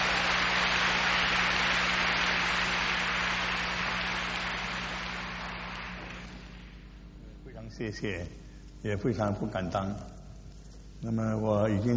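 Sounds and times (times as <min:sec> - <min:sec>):
warm applause from audience: 0:00.0 - 0:06.8
speech: 0:07.8 - 0:10.2, 0:11.0 - 0:11.9.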